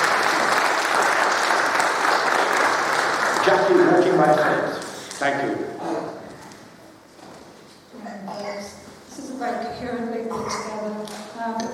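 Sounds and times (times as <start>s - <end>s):
audience applause: 0.0s - 5.4s
speech: 3.5s - 6.1s, 9.4s - 11.7s.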